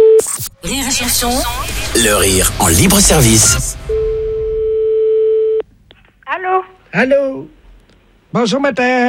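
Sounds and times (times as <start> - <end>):
telephone steady electronic tone: 0.2 - 5.6
speech: 0.7 - 4.0, 7.0 - 7.5, 8.3 - 9.0.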